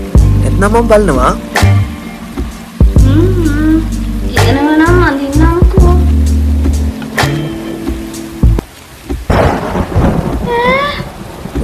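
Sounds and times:
heavy rain hissing: 0.0 - 11.6
speech: 0.6 - 1.7
thunder in a heavy rainstorm: 9.1 - 11.6.

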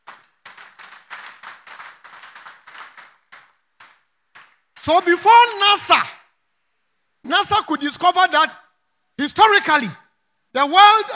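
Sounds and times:
audience clapping: 0.0 - 5.1
speech: 4.8 - 6.2, 7.2 - 8.6, 9.2 - 11.1.

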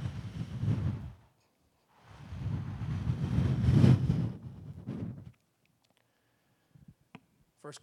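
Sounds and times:
gust of wind: 0.0 - 1.3, 2.0 - 5.3.

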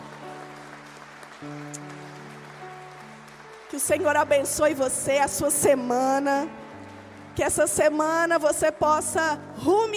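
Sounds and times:
audience applauding: 0.0 - 5.0
speech: 1.4 - 1.9, 3.7 - 6.6, 7.4 - 9.9.

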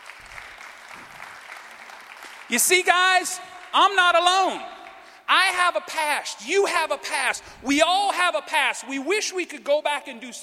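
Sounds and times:
crowd clapping: 0.0 - 5.3
speech: 2.5 - 10.4.

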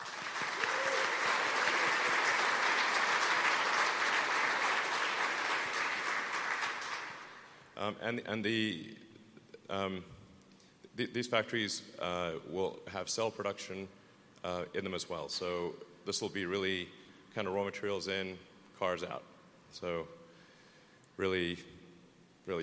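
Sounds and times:
crowd applauding: 0.0 - 7.5
speech: 7.8 - 9.1, 9.7 - 10.2, 11.0 - 20.2, 21.2 - 21.7, 22.4 - 22.6.

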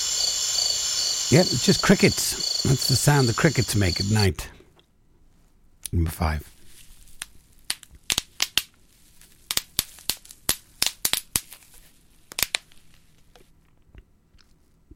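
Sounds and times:
speech: 1.3 - 4.6, 5.9 - 6.5
bubble wrap popping: 6.9 - 13.3.

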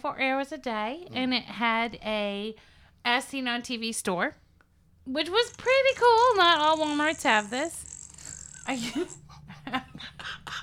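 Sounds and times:
speech: 0.0 - 4.4, 5.0 - 7.9, 8.7 - 10.6
mouth-made fart noises: 5.2 - 9.3.

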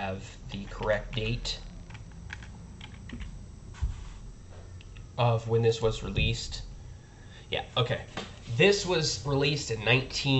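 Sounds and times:
speech: 0.0 - 1.7, 5.2 - 6.7, 7.5 - 10.3
low hum: 0.0 - 10.3
typing on a computer keyboard: 0.5 - 3.4.

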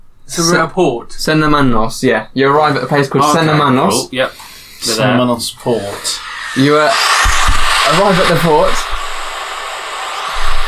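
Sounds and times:
speech: 0.3 - 7.2, 7.9 - 8.9
wind blowing by the sea: 5.7 - 10.6.

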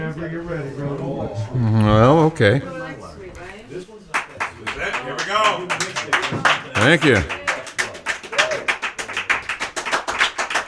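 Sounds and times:
speech: 0.1 - 2.8, 6.8 - 7.4
audience clapping: 4.1 - 10.6.

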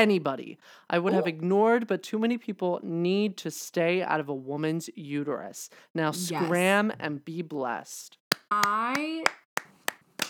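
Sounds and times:
speech: 0.0 - 9.4
hands clapping: 8.3 - 10.2.

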